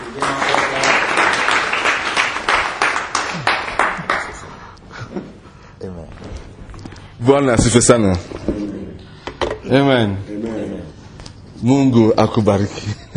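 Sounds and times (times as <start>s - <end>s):
audience clapping for a team leader at a gathering: 0.0s - 4.8s
speech: 7.3s - 8.4s, 9.7s - 10.3s, 11.6s - 13.1s.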